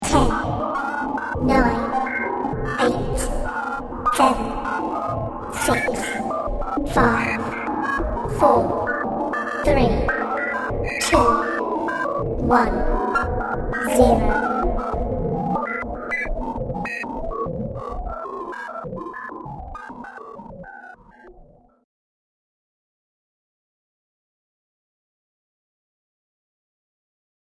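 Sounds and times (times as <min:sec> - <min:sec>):
science fiction computer countdown: 0:00.0 - 0:21.8.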